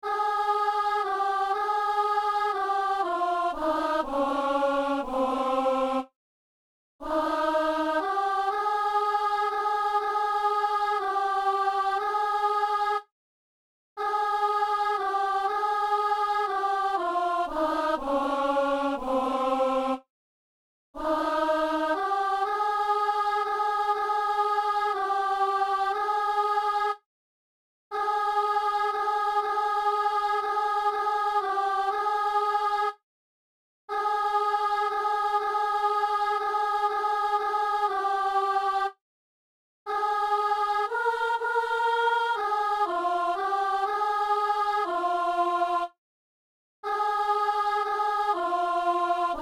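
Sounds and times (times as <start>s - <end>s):
soprano singing a psalm: 0.0s - 6.1s, 7.0s - 13.0s, 14.0s - 20.0s, 21.0s - 27.0s, 27.9s - 33.0s, 33.9s - 39.0s, 39.9s - 46.0s, 46.9s - 49.4s.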